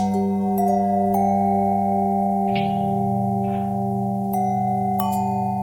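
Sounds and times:
long bell ringing with harmonic twist: 0.2s - 5.6s.

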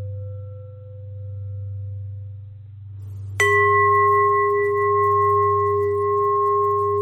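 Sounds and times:
long bell ringing: 3.4s - 7.0s.

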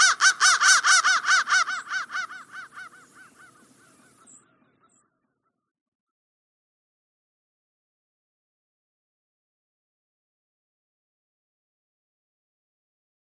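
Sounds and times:
crow cawing: 0.0s - 5.5s.

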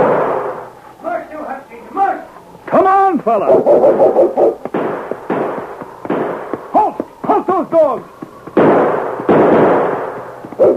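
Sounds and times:
gunshots: 0.0s - 0.7s, 3.5s - 8.0s, 8.6s - 10.7s
speech: 3.2s - 4.5s, 7.6s - 8.2s.

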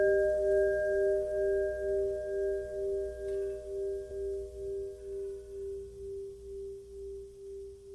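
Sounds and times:
long bell ringing: 0.0s - 5.9s.

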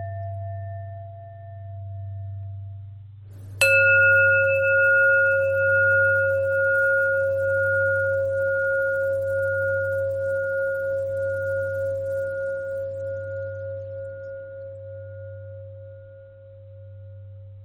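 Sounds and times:
long bell ringing: 3.6s - 13.6s.

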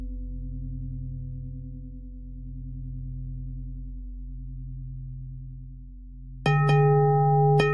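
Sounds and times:
pentatonic bell melody: 6.5s - 7.7s.

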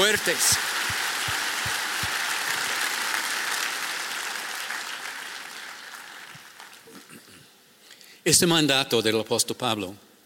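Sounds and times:
audience applauding loudly: 0.0s - 7.1s
speech: 0.1s - 1.0s, 8.2s - 10.1s.

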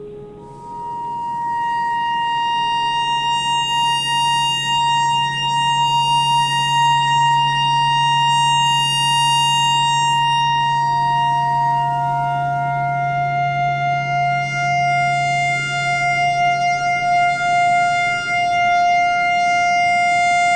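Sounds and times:
pentatonic clarinet notes: 0.0s - 20.5s
tornado siren: 0.0s - 20.5s.

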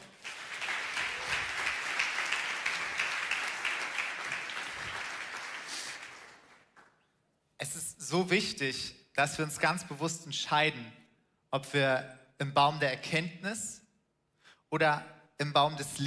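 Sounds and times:
audience applause: 0.0s - 6.9s
speech: 8.1s - 13.8s, 14.7s - 16.0s.

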